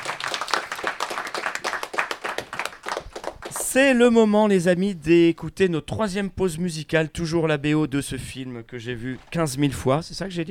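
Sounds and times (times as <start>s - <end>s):
studio hosts applauding: 0.0s - 3.9s
speech: 3.7s - 10.4s.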